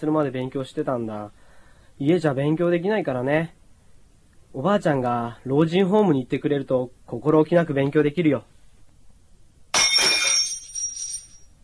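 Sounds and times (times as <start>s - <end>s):
speech: 0.0s - 1.4s, 2.0s - 3.6s, 4.5s - 8.5s
glass breaking in a kitchen: 9.7s - 11.5s.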